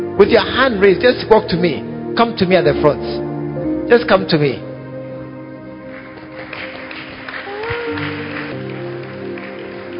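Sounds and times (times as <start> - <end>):
speech: 0.2 - 3.2, 3.9 - 4.7
audience clapping: 5.8 - 9.9.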